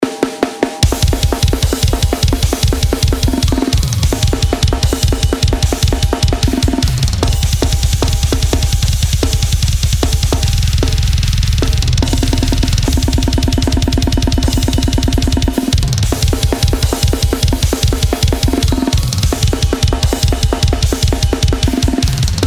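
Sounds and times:
drums: 0.0 - 22.4.

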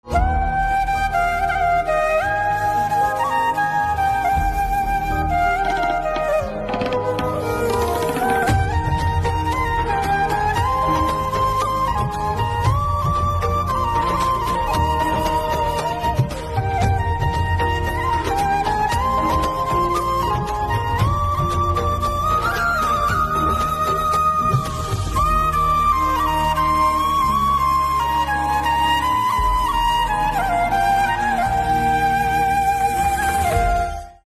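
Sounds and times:
flute instrumental ringtone: 0.1 - 34.2.

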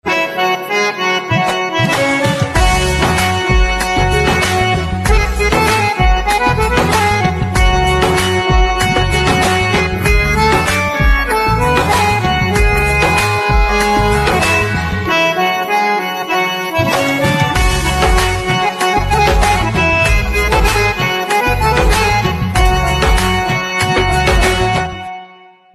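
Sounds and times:
harmonium instrumental ringtone: 0.0 - 25.7.

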